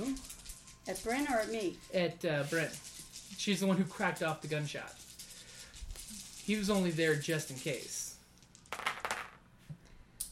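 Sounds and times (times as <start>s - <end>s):
speech: 0.9s - 5.0s, 6.1s - 8.0s
dice dropping on a table: 5.9s - 9.4s.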